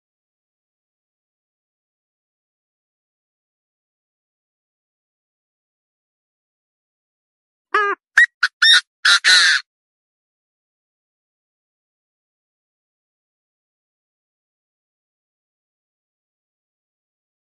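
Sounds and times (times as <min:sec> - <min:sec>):
partridge calling: 0:07.8 - 0:09.6.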